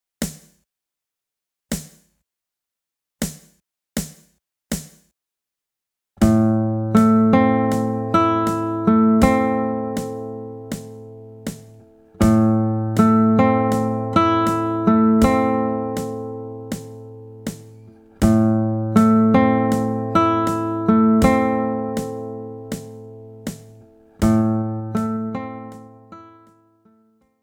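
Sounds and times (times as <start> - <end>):
slow rhythm: 6.2 - 26.6.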